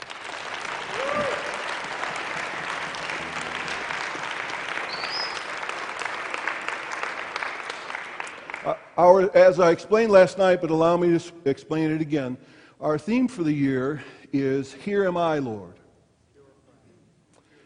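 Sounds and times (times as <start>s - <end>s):
audience applause welcoming a speaker at an evening Bible College gathering: 0.0s - 8.8s
speech: 8.6s - 15.8s.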